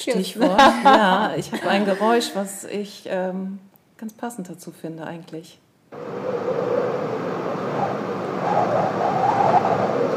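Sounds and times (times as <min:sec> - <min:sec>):
speech: 0:00.0 - 0:06.7
laughter: 0:00.3 - 0:02.4
raging storm wind: 0:06.0 - 0:10.1.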